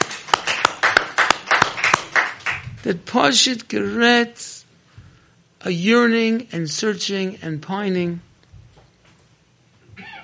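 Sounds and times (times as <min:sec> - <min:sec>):
audience applause: 0:00.0 - 0:02.6
speech: 0:02.8 - 0:04.6, 0:05.6 - 0:08.3.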